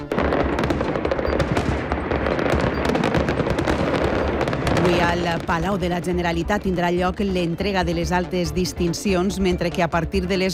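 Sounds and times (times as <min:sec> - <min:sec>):
fireworks exploding in València, Castelló and Alacant: 0:00.0 - 0:07.5
speech: 0:04.9 - 0:10.5.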